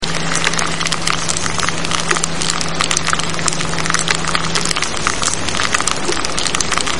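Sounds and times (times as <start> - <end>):
loud rice crispy cereal popping: 0.0 - 6.9.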